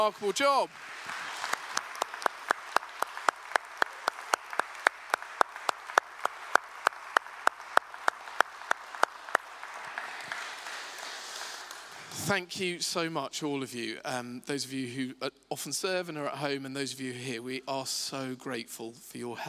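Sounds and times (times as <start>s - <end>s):
speech: 0.0s - 1.2s, 12.2s - 19.4s
audience applause: 0.0s - 12.2s.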